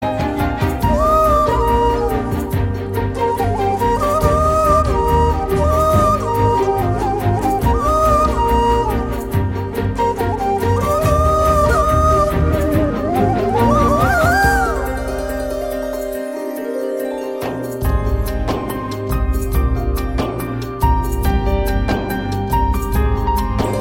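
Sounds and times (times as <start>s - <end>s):
Tamil flute background music: 0.0s - 23.8s.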